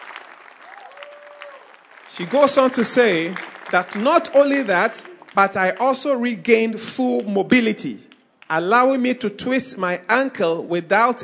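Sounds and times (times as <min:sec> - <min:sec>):
audience clapping hands: 0:00.0 - 0:08.6
speech: 0:02.1 - 0:11.2.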